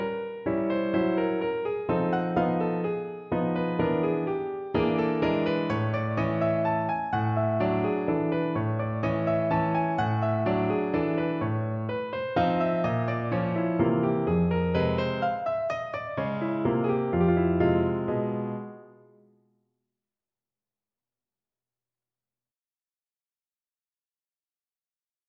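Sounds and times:
piano mazurka: 0:00.0 - 0:19.3.

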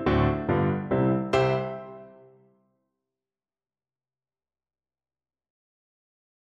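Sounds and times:
flute playing a folk tune: 0:00.1 - 0:02.3.

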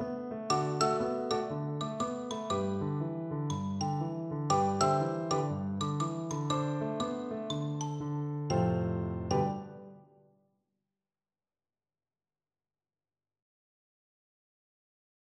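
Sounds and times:
xylophone: 0:00.5 - 0:10.0.

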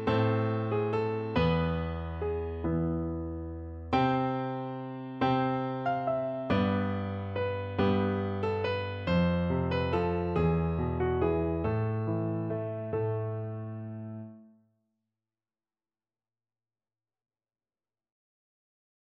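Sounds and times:
folk tune piano duet: 0:00.0 - 0:14.5.

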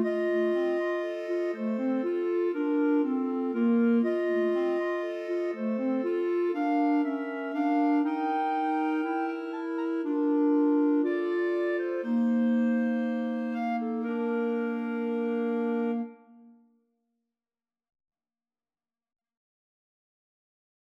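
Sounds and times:
clarinet trio playing a romance: 0:00.0 - 0:16.4.

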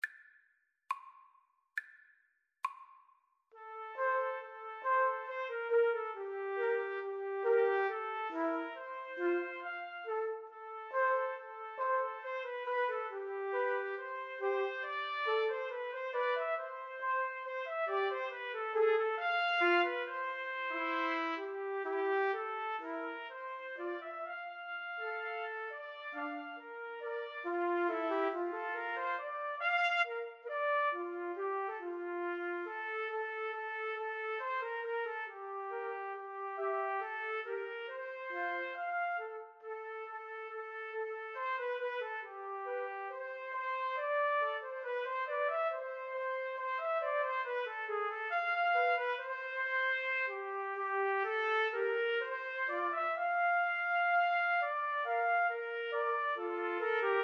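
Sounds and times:
trumpet trio: 0:03.6 - 0:57.2.

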